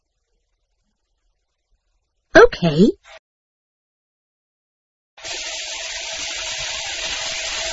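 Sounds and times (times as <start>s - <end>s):
speech: 2.5s - 3.2s
water running from a tap: 5.2s - 7.7s.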